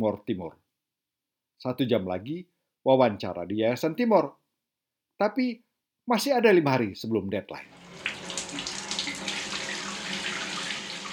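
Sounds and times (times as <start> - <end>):
speech: 0.0 - 0.6, 1.6 - 4.4, 5.2 - 7.8
water pouring from a tap into a bath: 7.7 - 11.1.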